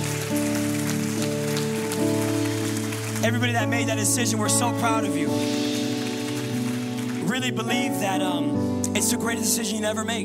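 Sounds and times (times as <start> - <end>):
church audience applause: 0.0 - 7.8
speech: 3.2 - 5.7, 7.3 - 10.2.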